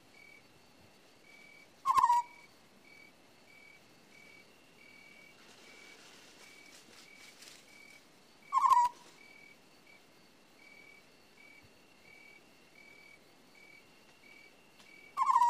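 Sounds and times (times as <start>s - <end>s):
owl screeching: 1.8s - 2.5s, 8.5s - 9.0s, 15.2s - 15.4s
rustling noise: 5.4s - 8.0s.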